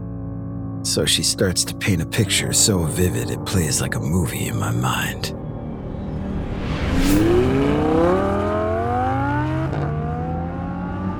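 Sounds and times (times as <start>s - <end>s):
speech: 0.8s - 5.4s
black Datsun 240Z engine roaring and accelerating: 5.3s - 11.1s.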